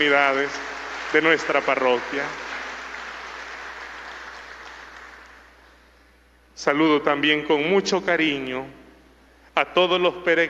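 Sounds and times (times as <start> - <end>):
speech: 0.0 - 2.4, 6.6 - 8.8, 9.6 - 10.4
audience applause: 0.0 - 5.6.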